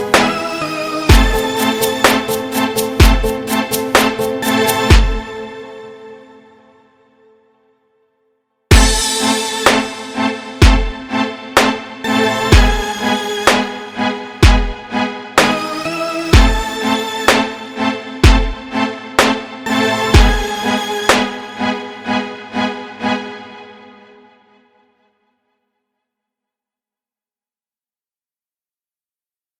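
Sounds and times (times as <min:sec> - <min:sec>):
instrumental music: 0:00.0 - 0:07.8, 0:08.7 - 0:24.6.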